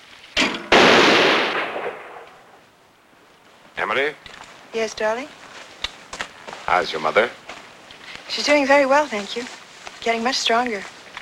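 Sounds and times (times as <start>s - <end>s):
skeet rifle shots at a firing range: 0.4s - 2.6s
speech: 3.8s - 5.4s, 6.7s - 7.4s, 8.3s - 10.9s.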